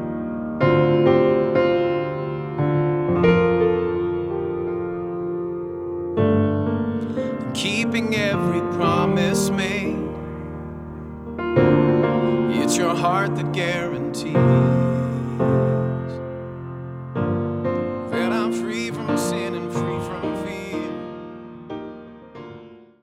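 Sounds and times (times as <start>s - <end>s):
spiritual piano piece: 0.0s - 23.0s.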